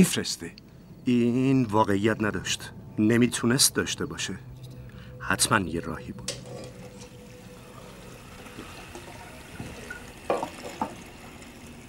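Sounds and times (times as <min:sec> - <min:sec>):
speech: 0:00.0 - 0:04.5, 0:05.2 - 0:06.4
dishes clinking: 0:06.2 - 0:07.4, 0:08.6 - 0:11.1
running water while washing dishes: 0:06.5 - 0:11.8.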